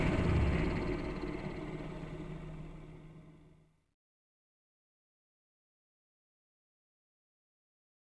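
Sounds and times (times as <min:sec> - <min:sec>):
boost sound: 0:00.0 - 0:03.2.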